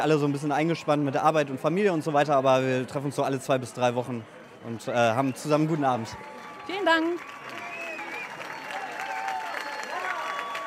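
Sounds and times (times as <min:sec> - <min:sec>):
speech: 0:00.0 - 0:07.4
audience applauding after a song: 0:05.0 - 0:10.6.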